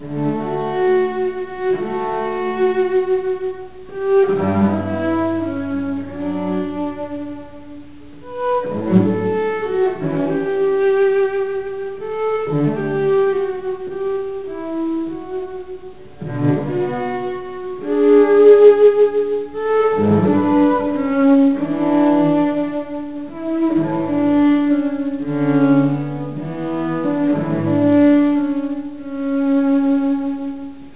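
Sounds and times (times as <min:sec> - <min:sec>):
cello playing a sarabande: 0:00.0 - 0:30.9.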